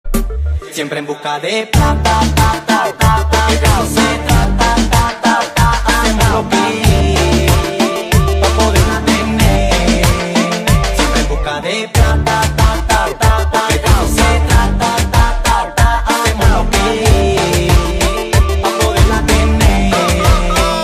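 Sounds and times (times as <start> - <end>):
music: 0.1 - 20.8.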